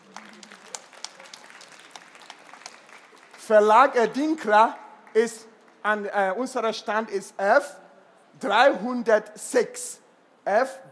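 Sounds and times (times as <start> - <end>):
audience applause: 0.0 - 3.6
speech: 3.5 - 7.8, 8.4 - 10.9.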